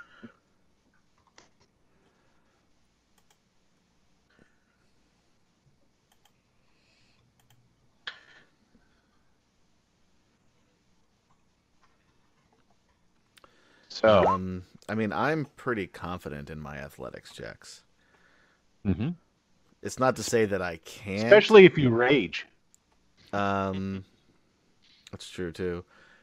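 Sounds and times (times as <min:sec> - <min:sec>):
faint computer keyboard typing into Roll20: 0:03.1 - 0:03.5, 0:06.0 - 0:07.7, 0:11.2 - 0:13.5
speech: 0:14.0 - 0:17.9, 0:18.8 - 0:19.2, 0:19.8 - 0:22.5, 0:23.3 - 0:24.1, 0:25.1 - 0:26.0.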